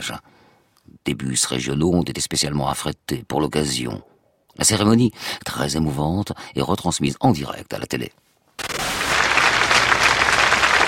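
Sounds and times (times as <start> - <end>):
speech: 0.0 - 0.3, 0.9 - 8.3
crowd applauding as a children's funeral procession passes: 8.6 - 10.8.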